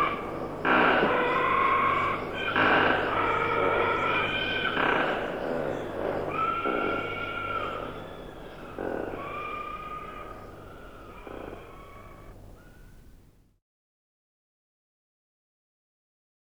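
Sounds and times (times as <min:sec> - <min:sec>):
hyrax harsh rasping calls: 0:00.0 - 0:12.8.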